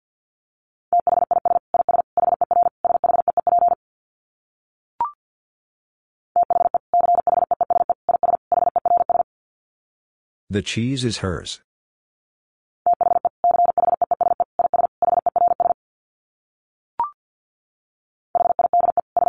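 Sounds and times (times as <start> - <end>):
Morse code beeps at 50 wpm: 1.0 - 3.8, 6.4 - 9.2, 12.9 - 15.8, 18.4 - 19.2
speech: 10.5 - 11.7.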